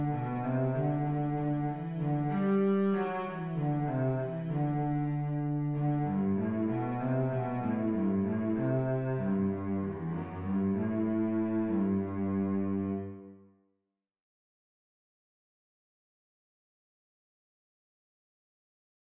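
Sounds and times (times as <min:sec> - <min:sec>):
cello: 0:00.0 - 0:13.5.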